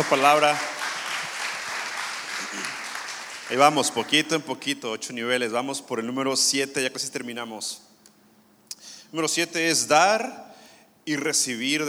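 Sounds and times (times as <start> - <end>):
speech: 0.0 - 0.8, 3.5 - 7.9, 9.1 - 10.5, 11.1 - 11.8
church audience applause: 0.0 - 4.0.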